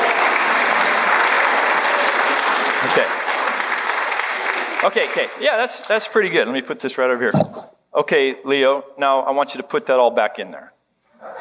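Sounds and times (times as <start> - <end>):
crowd clapping and cheering: 0.0 - 6.2
speech: 2.9 - 3.3, 4.8 - 10.7.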